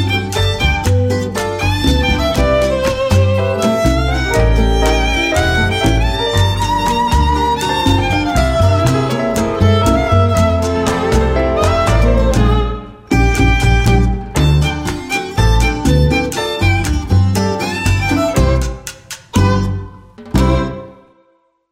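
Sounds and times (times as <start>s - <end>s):
Cuban danzon music: 0.0s - 21.3s.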